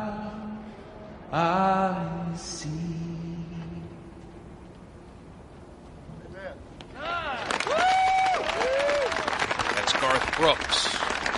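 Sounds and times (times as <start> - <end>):
speech: 1.3 - 3.0, 10.4 - 11.0
crowd cheering with whoops and shouts: 6.9 - 11.3
crowd clapping: 7.3 - 11.3.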